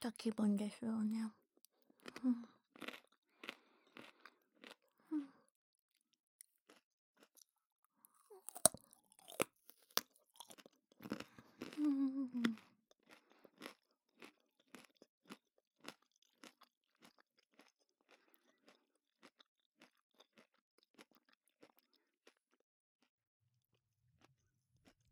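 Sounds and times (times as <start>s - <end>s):
speech: 0.0s - 1.4s, 2.2s - 2.9s, 11.8s - 12.7s
crunchy chewing of raw carrot: 1.7s - 5.0s, 6.5s - 7.5s, 8.1s - 22.4s.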